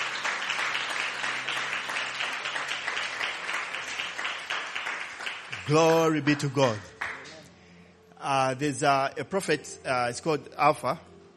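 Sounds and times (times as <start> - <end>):
audience hand clapping: 0.0 - 7.4
speech: 5.7 - 6.9, 8.2 - 11.1.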